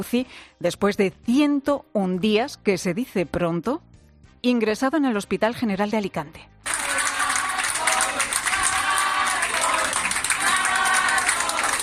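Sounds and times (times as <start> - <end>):
speech: 0.0 - 6.8
doctors and nurses applauding: 6.6 - 11.8
doctors and nurses chanting a name: 6.7 - 11.8.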